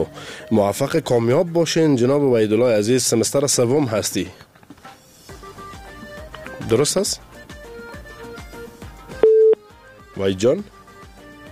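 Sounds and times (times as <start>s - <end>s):
speech: 0.0s - 4.5s, 6.7s - 7.3s, 10.2s - 10.8s
telephone busy tone after a dropped call to a radio show: 9.2s - 9.6s.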